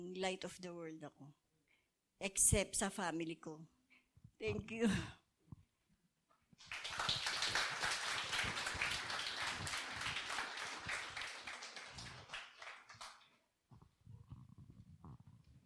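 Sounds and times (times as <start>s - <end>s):
speech: 0.0s - 1.4s, 2.2s - 3.8s, 4.4s - 5.2s, 6.6s - 6.8s
audience applause: 6.6s - 13.4s.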